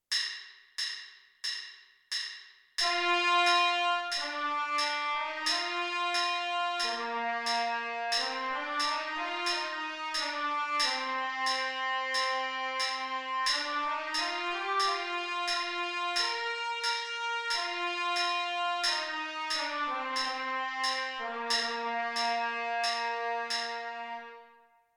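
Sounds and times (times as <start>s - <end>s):
trumpet part: 2.8s - 24.8s.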